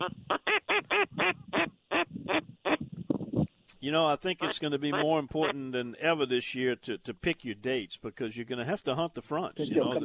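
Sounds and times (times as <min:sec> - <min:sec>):
speech: 0:00.0 - 0:00.6, 0:03.9 - 0:10.0
gadwall ducks quacking: 0:00.0 - 0:02.8, 0:04.3 - 0:05.7.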